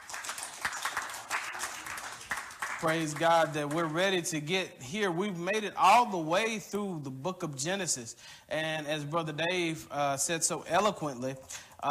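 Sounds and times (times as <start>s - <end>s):
audience clapping hands: 0.0s - 4.2s
speech: 2.8s - 11.8s.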